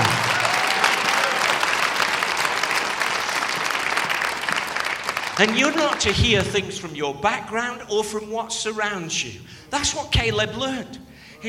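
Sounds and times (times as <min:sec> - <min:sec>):
audience applause: 0:00.0 - 0:06.4
speech: 0:05.4 - 0:11.4.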